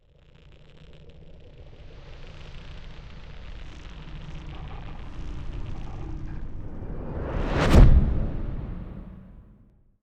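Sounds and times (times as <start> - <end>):
rising sweep: 6.0 - 9.6
impact hit: 6.4 - 9.6.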